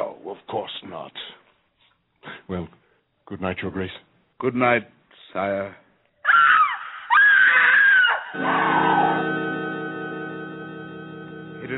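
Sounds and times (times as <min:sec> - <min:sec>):
speech: 0:00.0 - 0:01.4, 0:02.5 - 0:05.8
woman screaming: 0:06.2 - 0:09.2.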